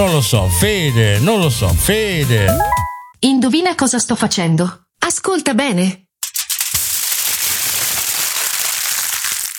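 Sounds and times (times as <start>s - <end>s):
speech: 0.0s - 6.0s
crumpling aluminium foil: 6.2s - 9.5s.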